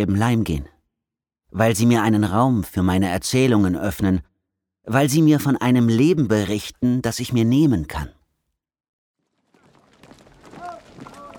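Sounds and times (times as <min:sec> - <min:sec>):
speech: 0:00.0 - 0:00.7, 0:01.5 - 0:08.2
British troops marching footsteps into Cologne: 0:09.2 - 0:11.3
hooves clopping: 0:09.2 - 0:11.3.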